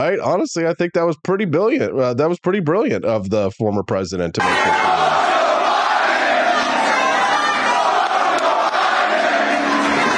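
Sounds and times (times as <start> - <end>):
speech: 0.0 - 5.2
crowd chanting a slogan: 4.4 - 10.1.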